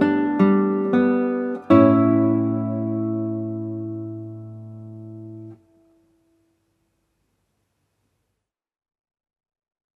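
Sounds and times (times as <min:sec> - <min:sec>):
prelude: 0:00.0 - 0:05.7.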